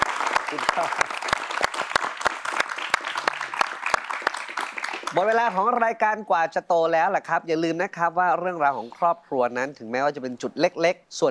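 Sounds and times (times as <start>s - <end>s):
audience applause: 0.0s - 5.8s
speech: 0.5s - 1.4s, 5.1s - 11.2s.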